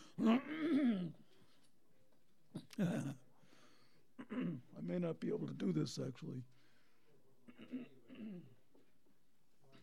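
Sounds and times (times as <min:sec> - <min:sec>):
person clearing throat: 0:00.2 - 0:01.2, 0:04.2 - 0:04.8, 0:07.5 - 0:08.6
speech: 0:00.2 - 0:01.2, 0:02.8 - 0:03.2, 0:04.9 - 0:06.6.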